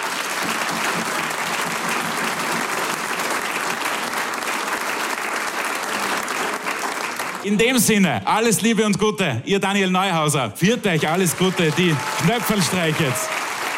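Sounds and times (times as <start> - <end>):
audience applause: 0.0 - 7.6, 10.8 - 13.7
speech: 7.4 - 13.4.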